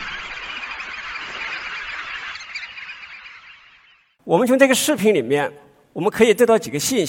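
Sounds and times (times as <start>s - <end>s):
feeding flock of West Atlantic red knot shorebirds calling: 0.0s - 4.2s
speech: 4.2s - 7.0s.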